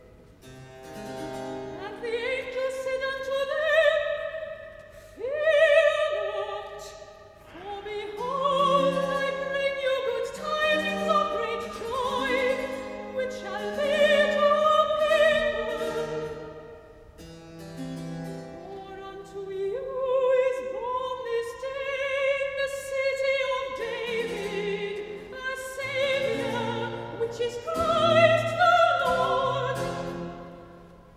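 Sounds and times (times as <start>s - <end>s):
soprano singing recitative: 1.8s - 4.6s, 5.2s - 16.5s, 18.6s - 30.7s.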